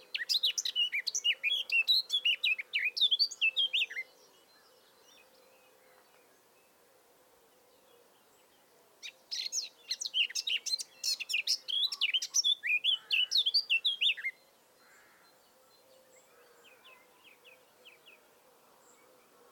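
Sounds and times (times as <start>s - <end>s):
Eurasian blackcap song: 0.0s - 6.8s, 8.2s - 14.5s.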